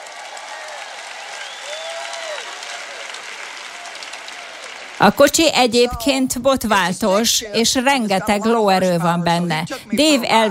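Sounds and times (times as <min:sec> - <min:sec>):
audience applause: 0:00.0 - 0:05.4
speech: 0:05.0 - 0:10.4.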